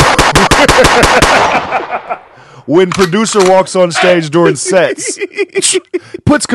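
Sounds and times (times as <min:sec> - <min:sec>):
gunshots sound effect: 0:00.0 - 0:04.1
laughter: 0:00.3 - 0:02.4, 0:03.9 - 0:06.3
speech: 0:00.8 - 0:06.5.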